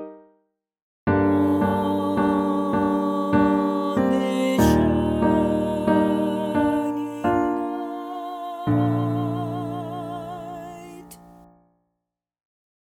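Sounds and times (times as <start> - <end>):
soprano singing: 1.1 - 11.4.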